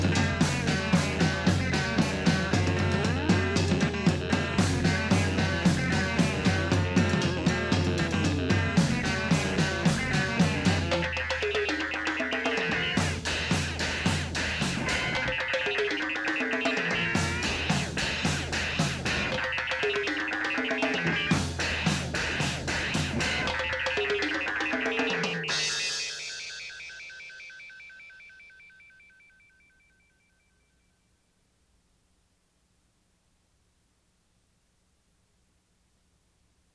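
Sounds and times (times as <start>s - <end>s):
world music: 0.0s - 26.6s.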